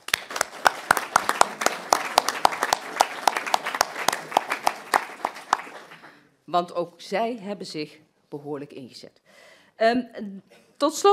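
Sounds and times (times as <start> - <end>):
group applauding: 0.0 - 6.3
speech: 6.5 - 11.1.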